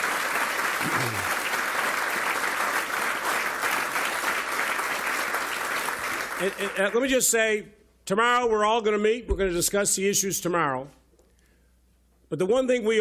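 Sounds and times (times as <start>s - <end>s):
audience applause: 0.0s - 7.0s
speech: 6.4s - 11.0s, 12.3s - 12.9s.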